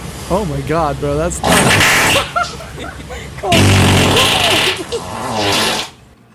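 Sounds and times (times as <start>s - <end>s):
speech: 0.3s - 5.9s
fart sounds: 1.4s - 2.4s, 3.5s - 6.0s
laughter: 1.7s - 5.3s.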